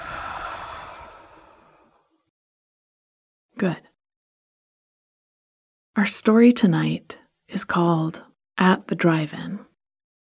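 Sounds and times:
deep exhale in a relaxation breathing exercise: 0.0s - 2.2s
speech: 3.6s - 3.9s, 6.0s - 9.7s.

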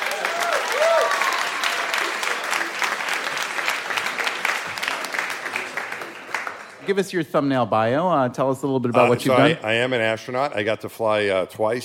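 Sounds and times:
live audience applause welcoming an astronaut guest: 0.0s - 6.9s
speech: 6.9s - 11.8s.

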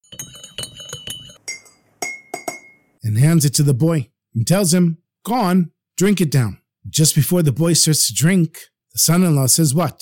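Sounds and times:
spoon stirring tea in a mug: 0.0s - 3.0s
speech: 3.0s - 10.0s.

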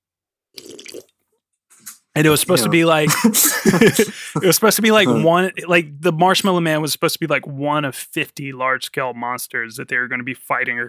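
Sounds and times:
person sipping a drink: 0.6s - 1.2s
swallowing: 0.6s - 1.2s
laughter: 2.2s - 5.4s
speech: 2.2s - 10.8s.

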